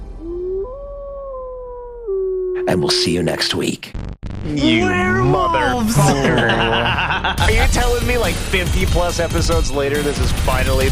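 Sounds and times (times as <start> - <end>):
wolf howling: 0.2 - 2.8
speech: 2.6 - 10.9
laughter: 5.7 - 7.9.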